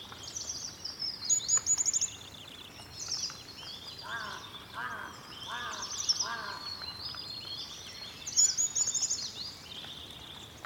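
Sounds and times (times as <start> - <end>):
many birds singing in an old-growth pine forest after rain, Sikkim: 0.1 - 10.6.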